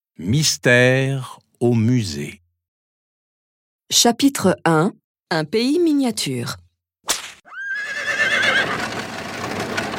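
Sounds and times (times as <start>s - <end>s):
speech: 0.2s - 2.4s, 3.9s - 6.6s
horse neighing: 7.5s - 8.9s
carriage on road: 8.4s - 9.9s.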